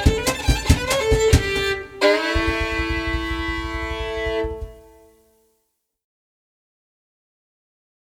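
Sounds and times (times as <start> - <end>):
violin tune: 0.0 - 5.2.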